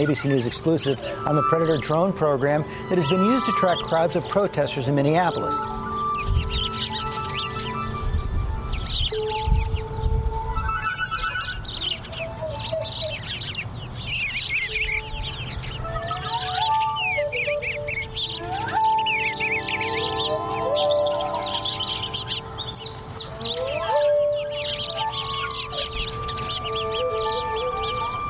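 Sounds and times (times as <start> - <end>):
speech: 0.0 - 5.8
several birds singing: 0.0 - 28.2.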